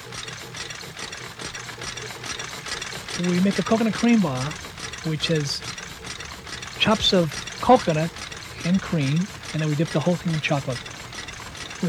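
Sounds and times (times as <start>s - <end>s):
wheels and gears of a fire truck red taffy machine: 0.0s - 11.8s
speech: 3.2s - 5.8s, 6.8s - 10.9s.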